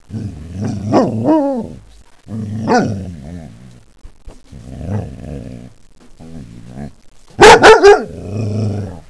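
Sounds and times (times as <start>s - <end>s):
growling: 0.0s - 3.8s, 4.5s - 7.0s, 8.0s - 9.0s.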